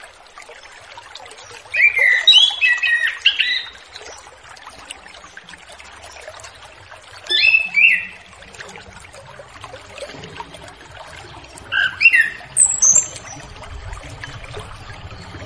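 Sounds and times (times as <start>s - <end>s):
orange-headed thrush singing repeated whistled notes: 1.7s - 3.9s, 7.3s - 8.3s, 11.7s - 13.5s.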